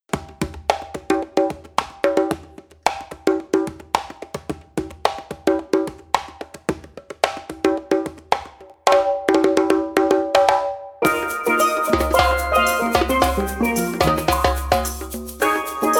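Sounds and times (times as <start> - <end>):
Afrobeat music: 0.2 - 15.9.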